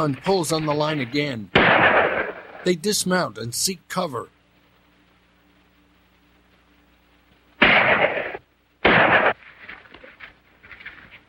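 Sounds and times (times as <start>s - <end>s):
speech: 0.0s - 2.0s, 2.6s - 4.4s
pistol shots: 1.6s - 2.7s, 7.6s - 9.5s.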